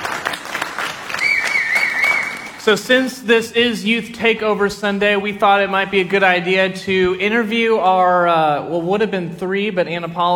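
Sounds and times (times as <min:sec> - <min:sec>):
audience applause: 0:00.0 - 0:02.6
high wavering whistle-like tone: 0:01.1 - 0:02.6
speech: 0:02.6 - 0:10.3.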